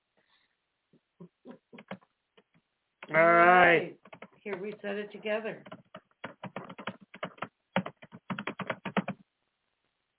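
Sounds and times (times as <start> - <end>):
fingers typing on a computer keyboard: 1.8 - 2.1, 4.0 - 9.2
speech: 4.5 - 5.8.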